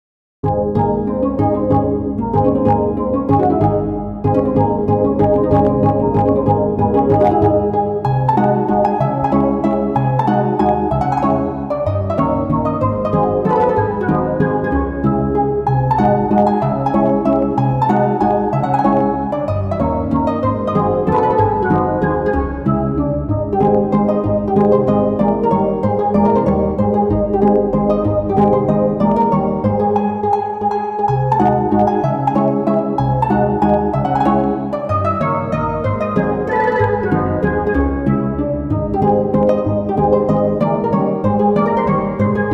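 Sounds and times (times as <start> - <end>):
mazurka: 0.4 - 42.5.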